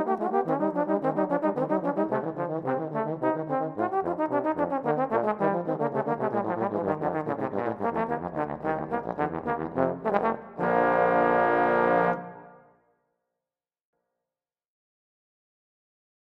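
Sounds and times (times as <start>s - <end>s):
trombone: 0.0s - 12.6s.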